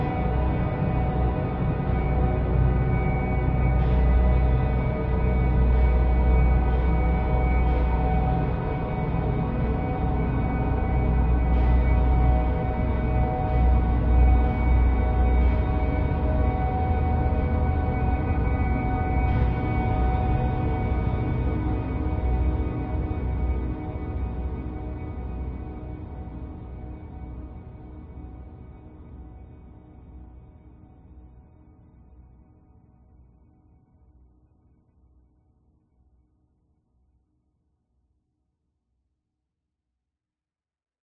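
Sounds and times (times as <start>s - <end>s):
dark subtle tense horror drone atmosphere: 0.0s - 31.1s.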